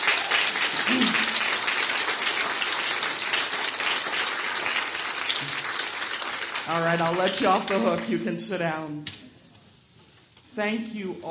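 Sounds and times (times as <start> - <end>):
audience round of applause: 0.0 - 8.2
speech: 6.7 - 9.2, 10.6 - 11.2.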